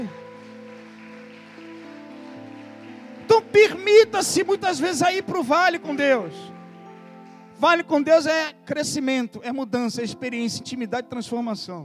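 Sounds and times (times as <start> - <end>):
speech: 0.0 - 0.2, 3.5 - 6.6, 7.6 - 11.8
crowd applause: 0.0 - 4.8
sustained keyboard chords: 0.0 - 11.8.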